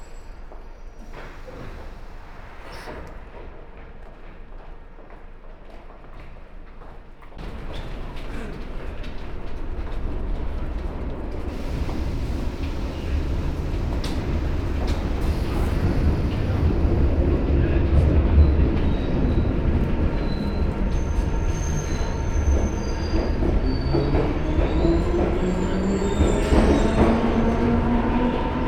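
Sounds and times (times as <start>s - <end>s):
London Underground train: 0.0s - 28.6s.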